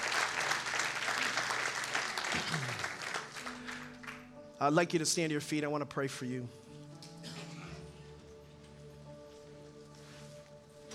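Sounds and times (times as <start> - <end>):
audience hand clapping: 0.0 - 4.4
speech: 4.6 - 6.7.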